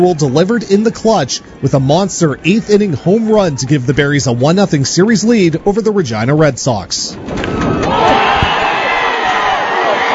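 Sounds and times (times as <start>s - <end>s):
stadium crowd cheering at baseball game: 0.0s - 6.0s, 7.2s - 10.1s
speech: 0.0s - 7.4s.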